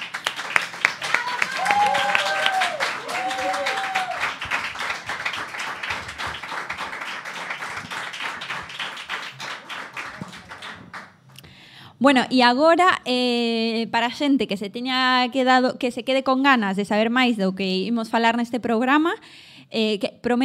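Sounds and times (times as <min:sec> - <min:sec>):
audience applause: 0:00.0 - 0:11.2
people whooping and cheering: 0:01.0 - 0:04.4
speech: 0:12.0 - 0:20.4.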